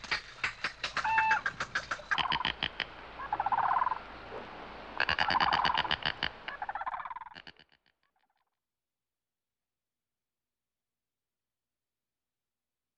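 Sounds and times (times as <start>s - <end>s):
bird clucking notes and short harmonic squeals: 0.0s - 4.0s, 5.0s - 7.8s.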